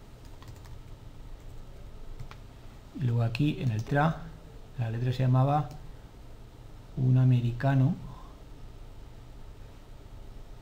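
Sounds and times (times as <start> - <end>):
typing on a computer keyboard in Word: 0.2 - 2.4
speech: 3.0 - 5.8, 7.0 - 8.1.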